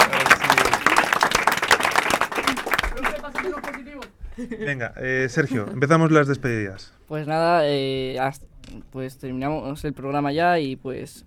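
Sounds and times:
audience applause: 0:00.0 - 0:04.1
speech: 0:04.4 - 0:11.2.

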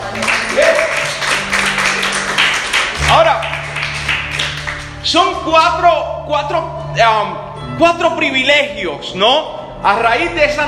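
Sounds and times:
audience applause: 0:00.0 - 0:04.9
speech: 0:05.1 - 0:10.6.

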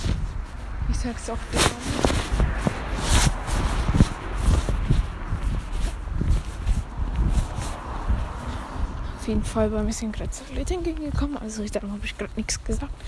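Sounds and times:
footsteps of a person walking outdoors past houses: 0:00.0 - 0:13.0
speech: 0:01.0 - 0:02.1, 0:09.3 - 0:13.0.

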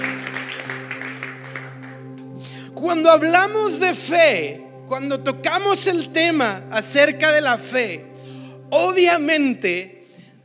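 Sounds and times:
audience applauding: 0:00.0 - 0:02.3
sustained keyboard chords: 0:00.0 - 0:10.4
speech: 0:02.8 - 0:08.1, 0:08.7 - 0:10.0.

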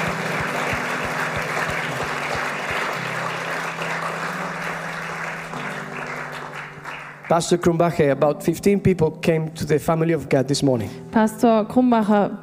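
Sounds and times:
church audience applause: 0:00.0 - 0:08.0
speech: 0:07.3 - 0:12.4.

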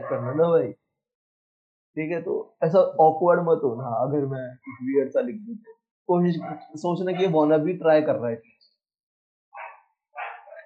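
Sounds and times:
speech: 0:00.1 - 0:00.9, 0:01.9 - 0:08.6
dog barking: 0:06.4 - 0:07.4, 0:09.6 - 0:10.6.

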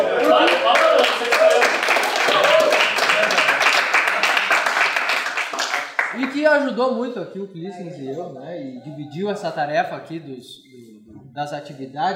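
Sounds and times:
voices cheering and chatter: 0:00.0 - 0:03.3
class applauding: 0:00.0 - 0:06.4
speech: 0:06.4 - 0:12.1.

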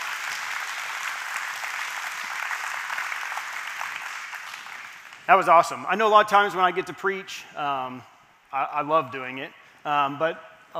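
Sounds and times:
round of applause: 0:00.0 - 0:05.3
speech: 0:05.3 - 0:10.7.

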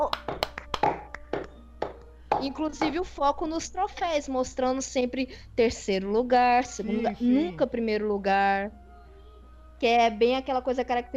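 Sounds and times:
hand claps: 0:00.0 - 0:03.0
speech: 0:02.4 - 0:08.8, 0:09.8 - 0:11.1.

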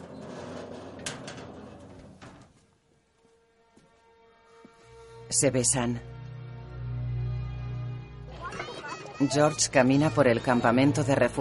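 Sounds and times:
storeroom door sliding and thudding shut: 0:00.0 - 0:02.7
speech: 0:05.3 - 0:06.1, 0:09.2 - 0:11.4.

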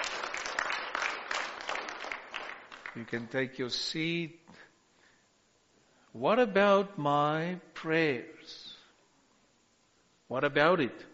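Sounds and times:
audience clapping: 0:00.0 - 0:03.4
speech: 0:03.0 - 0:04.4, 0:06.2 - 0:08.6, 0:10.3 - 0:11.1.

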